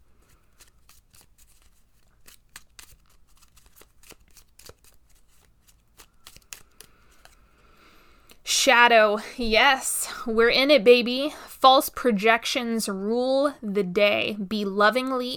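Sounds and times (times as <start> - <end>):
Sovereign Oracle cards shuffled and pulled: 0.2 - 7.6
speech: 8.6 - 15.3.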